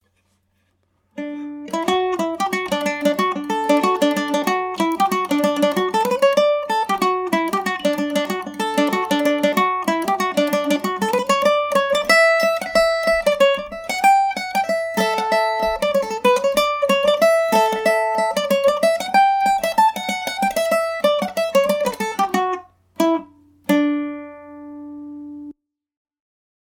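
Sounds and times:
Irish mandolin in D major: 0.0s - 25.6s.

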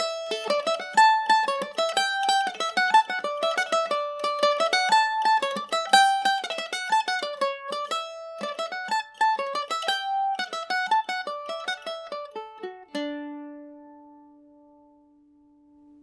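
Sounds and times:
mandolin: 0.0s - 16.0s.

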